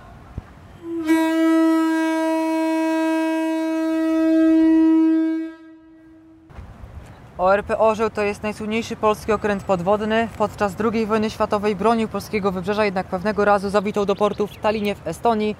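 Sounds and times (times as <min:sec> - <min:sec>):
compressed-air lighthouse foghorn sounding: 0:00.8 - 0:06.5
speech: 0:07.4 - 0:15.5.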